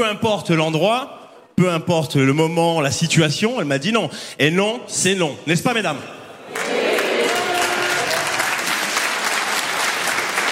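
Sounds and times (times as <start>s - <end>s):
speech: 0.0s - 6.2s
audience applause, mostly women clapping: 6.5s - 10.5s.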